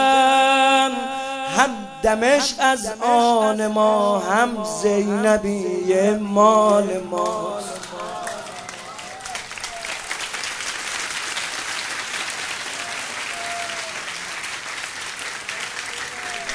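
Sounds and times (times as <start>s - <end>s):
person chanting at a Shia mourning gathering: 0.0s - 9.9s
speech: 1.6s - 7.8s
audience clapping at a Shia mourning gathering: 6.7s - 16.5s.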